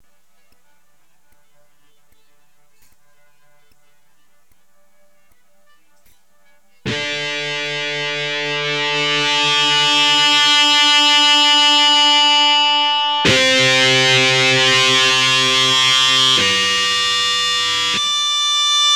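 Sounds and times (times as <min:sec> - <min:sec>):
electric guitar power chord: 0:06.9 - 0:18.2.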